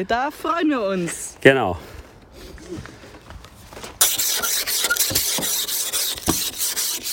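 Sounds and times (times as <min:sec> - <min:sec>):
speech: 0:00.0 - 0:02.0, 0:02.7 - 0:03.0
scraping ice off a car: 0:04.0 - 0:07.1.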